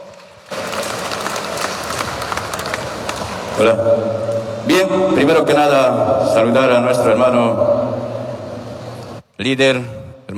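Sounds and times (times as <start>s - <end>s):
crowd loud applause: 0.0s - 3.6s
speech: 3.6s - 7.8s, 9.4s - 10.3s.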